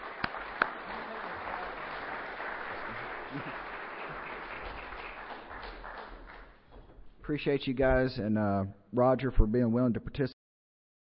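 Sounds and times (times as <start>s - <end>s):
audience applause: 0.0s - 6.6s
speech: 3.3s - 3.6s, 7.3s - 10.4s.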